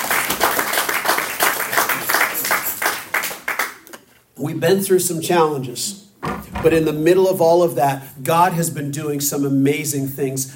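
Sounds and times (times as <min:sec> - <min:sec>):
audience clapping: 0:00.0 - 0:03.9
speech: 0:04.4 - 0:06.0, 0:06.6 - 0:10.5.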